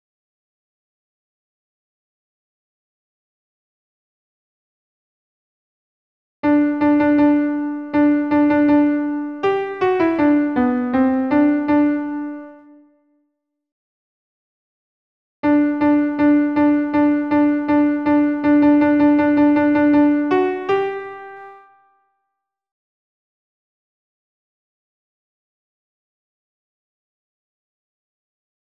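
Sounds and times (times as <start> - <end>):
solo alto piano: 6.4 - 12.9, 15.4 - 21.9.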